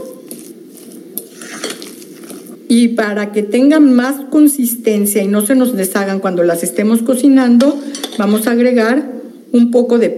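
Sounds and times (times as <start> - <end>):
utensil scraping a bowl stirring egg into mashed potato: 0.3 - 2.4
speech: 2.7 - 10.1.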